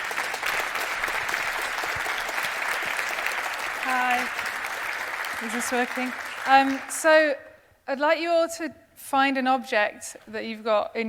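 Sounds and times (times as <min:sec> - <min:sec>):
audience applause: 0:00.0 - 0:07.1
speech: 0:05.4 - 0:11.0.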